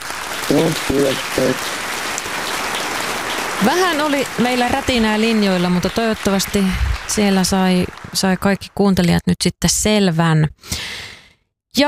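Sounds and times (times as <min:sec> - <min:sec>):
applause sound effect: 0:00.0 - 0:09.2
speech: 0:00.5 - 0:01.9, 0:03.6 - 0:10.9.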